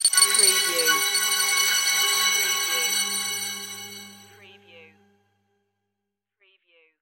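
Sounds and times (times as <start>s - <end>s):
bonus item shimmer: 0.0s - 4.6s.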